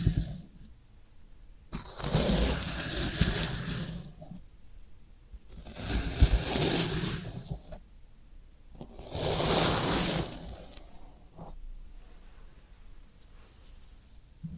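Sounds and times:
floral foam crunchy hissing scraping: 0.0 - 0.7, 1.8 - 4.4, 5.5 - 7.8, 8.8 - 14.5.

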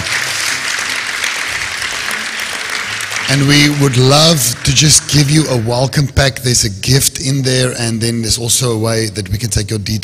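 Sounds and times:
audience clapping for visitors: 0.0 - 6.6
speech: 3.3 - 10.0.

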